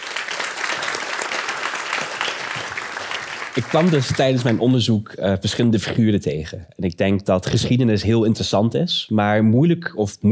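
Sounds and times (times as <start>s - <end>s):
audience applause: 0.0s - 4.7s
speech: 3.6s - 10.2s.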